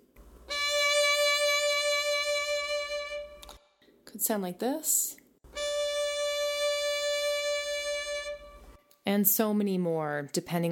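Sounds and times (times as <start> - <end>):
held D note with vibrato: 0.5 - 3.6, 5.5 - 8.8
speech: 4.1 - 5.2, 9.1 - 10.6.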